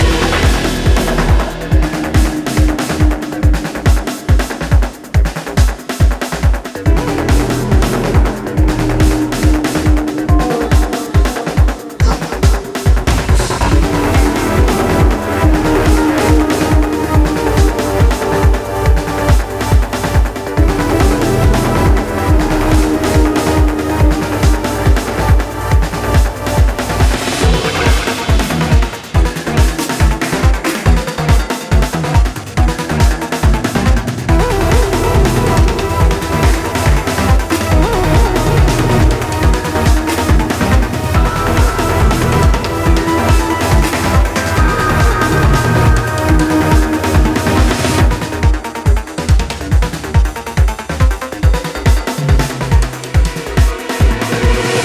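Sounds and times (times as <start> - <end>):
boss battle game music loop layer: 0.0 - 54.8.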